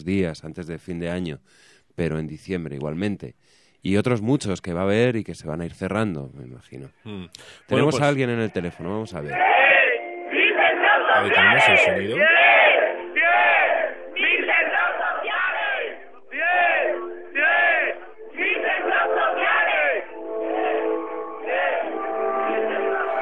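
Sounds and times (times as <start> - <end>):
speech: 0.0 - 9.6, 11.2 - 12.4
live crowd shouting and chanting: 9.3 - 23.2
steady musical tone: 9.3 - 23.2.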